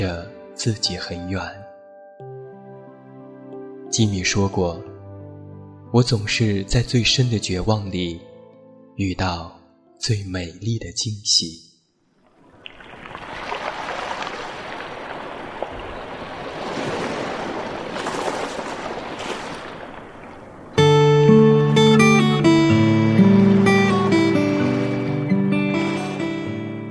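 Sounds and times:
speech: 0.0s - 1.6s, 3.9s - 4.9s, 5.9s - 8.3s, 9.0s - 11.7s
sea waves: 12.2s - 26.9s.

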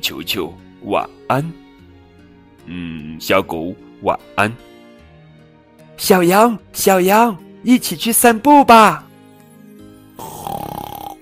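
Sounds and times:
speech: 0.0s - 1.6s, 2.6s - 4.7s, 6.0s - 9.1s
snoring: 10.2s - 11.1s.

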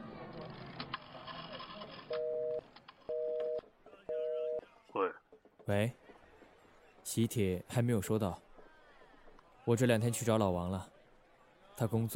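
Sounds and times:
telephone number being dialed: 2.1s - 4.6s
speech: 5.7s - 6.0s, 7.1s - 8.5s, 9.7s - 10.9s, 11.8s - 12.1s.

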